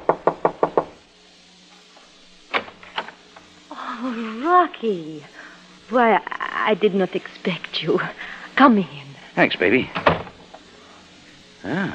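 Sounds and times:
knocking on a door: 0:00.0 - 0:00.9
speech: 0:04.6 - 0:10.0, 0:11.6 - 0:11.9.

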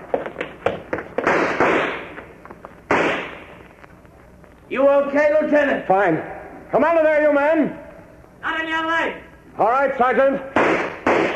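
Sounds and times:
gunshots fired as covering fire: 0:01.2 - 0:02.1, 0:02.9 - 0:03.5, 0:10.5 - 0:11.3
speech: 0:04.7 - 0:07.8, 0:08.7 - 0:10.5.

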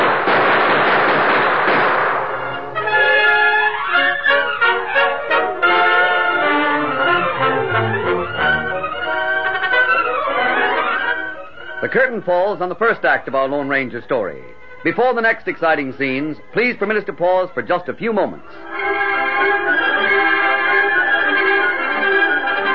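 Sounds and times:
gunfire volley in a dramatized shootout: 0:00.0 - 0:03.2
orchestral music: 0:01.6 - 0:13.0, 0:18.6 - 0:22.7
speech: 0:11.9 - 0:19.6.

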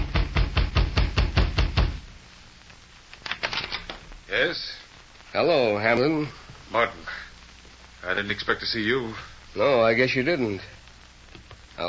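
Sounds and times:
knocking on a wooden door: 0:00.0 - 0:02.0
speech: 0:04.4 - 0:07.1, 0:08.0 - 0:10.8.

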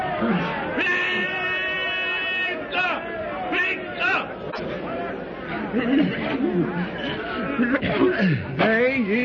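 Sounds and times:
speech: 0:00.2 - 0:00.6, 0:05.7 - 0:07.0, 0:07.6 - 0:09.2
blood-curdling yell of charging man: 0:00.8 - 0:04.3
laughter: 0:04.5 - 0:08.6.

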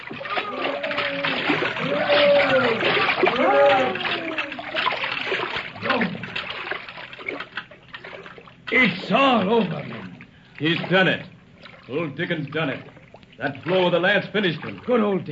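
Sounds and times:
people shouting: 0:00.0 - 0:05.2
water surging: 0:00.0 - 0:15.2
whale diving with churning splash: 0:00.0 - 0:15.2
speech: 0:09.1 - 0:10.0, 0:10.6 - 0:11.3, 0:11.9 - 0:15.2.

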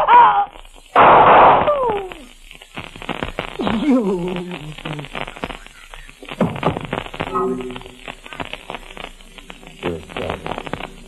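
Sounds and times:
gunshot in a dramatic scene: 0:00.9 - 0:02.0, 0:06.3 - 0:07.8
people talking: 0:01.7 - 0:02.4, 0:03.5 - 0:11.0.

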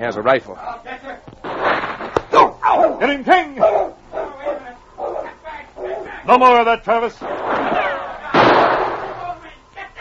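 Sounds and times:
speech: 0:00.0 - 0:00.9, 0:02.8 - 0:03.9, 0:06.3 - 0:07.8
rifle gunshot smashing a carbine: 0:07.2 - 0:09.3.

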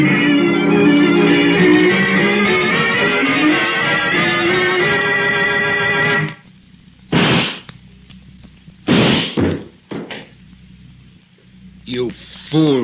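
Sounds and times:
sustained musical tone: 0:00.0 - 0:06.4
gunshots during a struggle in a radio drama: 0:07.1 - 0:07.7, 0:08.9 - 0:09.5.

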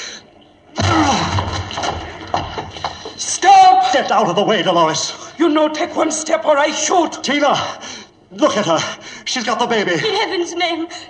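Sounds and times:
locked door being broken down: 0:00.8 - 0:03.1
speech: 0:04.0 - 0:11.0.

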